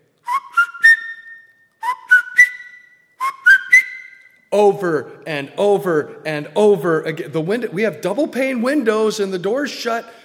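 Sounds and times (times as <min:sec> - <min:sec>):
person whistling an imitation of a bird's three-note tweet: 0:00.3 - 0:04.4
speech: 0:04.5 - 0:10.2.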